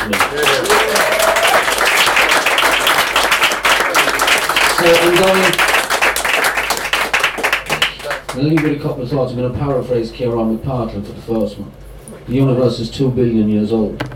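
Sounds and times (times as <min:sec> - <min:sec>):
speech: 0:00.0 - 0:00.7, 0:04.9 - 0:05.7, 0:08.4 - 0:14.1
audience round of applause: 0:00.0 - 0:08.7.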